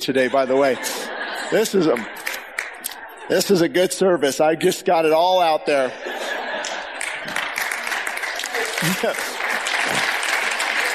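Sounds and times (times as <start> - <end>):
speech: 0.0 - 2.2, 3.3 - 6.1, 8.8 - 9.3
laughter: 0.0 - 10.9
audience clapping: 1.8 - 3.1, 6.5 - 10.9.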